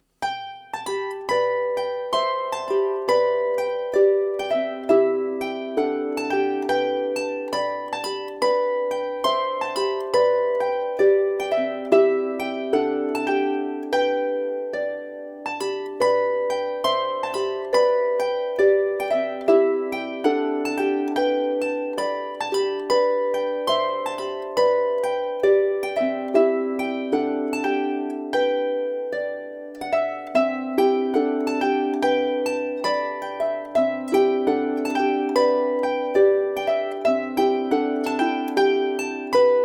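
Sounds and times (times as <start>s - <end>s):
polska folk music: 0.0s - 39.6s.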